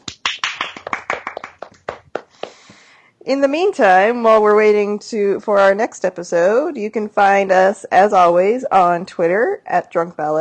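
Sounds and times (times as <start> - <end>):
small group round of applause: 0.0 - 2.7
speech: 3.2 - 10.3.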